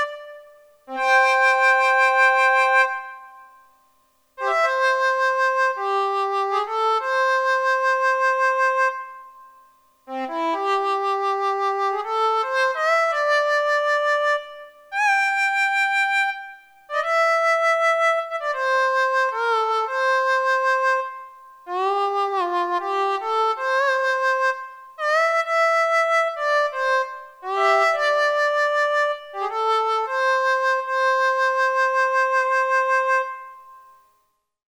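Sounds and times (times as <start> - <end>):
harmonica patch on a Roland Jupiter-8 synthesizer: 0.0 - 3.7, 4.4 - 34.1.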